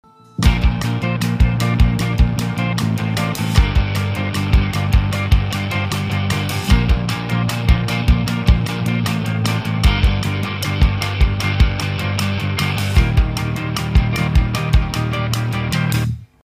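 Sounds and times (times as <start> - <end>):
calm instrumental refrain: 0.0 - 16.4.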